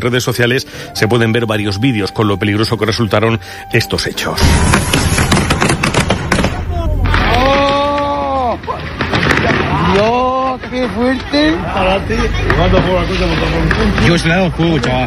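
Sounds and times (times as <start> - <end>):
speech: 0.0 - 5.2, 9.9 - 10.2, 10.8 - 15.0
pyrotechnic explosions: 4.4 - 10.1.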